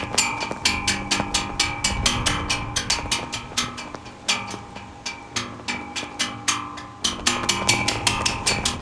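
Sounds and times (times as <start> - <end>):
flag flapping: 0.0 - 8.7
wind blowing: 0.0 - 8.7.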